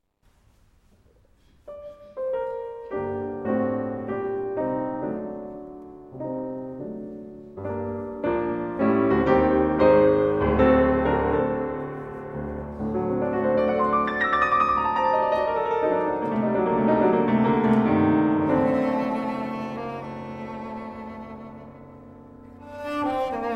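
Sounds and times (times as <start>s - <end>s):
cello and piano sonata in G minor played live: 1.0s - 23.5s.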